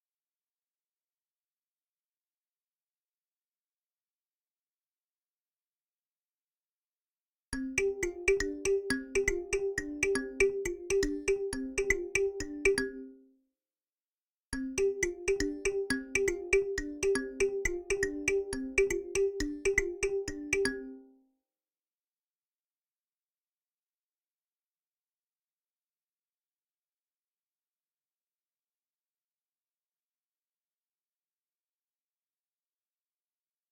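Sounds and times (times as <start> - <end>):
kalimba: 7.6 - 13.2, 14.6 - 21.0.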